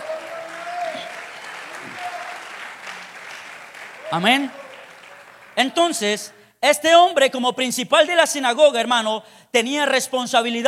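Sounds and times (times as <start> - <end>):
audience applauding loudly: 0.0 - 6.1
speech: 4.1 - 4.6, 5.6 - 10.6.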